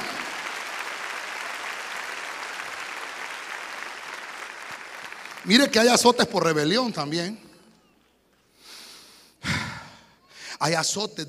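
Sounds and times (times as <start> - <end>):
audience applause: 0.0 - 6.1
speech: 5.4 - 7.4, 10.6 - 11.2.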